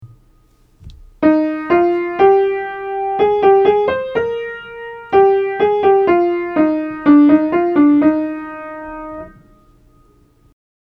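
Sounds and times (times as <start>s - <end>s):
embellishing tones aural training exercise: 0.4s - 10.2s.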